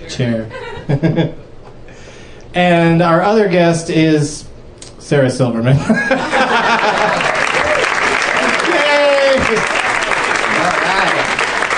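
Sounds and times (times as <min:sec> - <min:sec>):
speech: 0:00.1 - 0:01.5, 0:02.6 - 0:04.5, 0:05.1 - 0:07.2
laughter: 0:00.2 - 0:01.4, 0:05.8 - 0:11.4
large audience clapping: 0:06.6 - 0:11.7
cheers: 0:07.0 - 0:11.7.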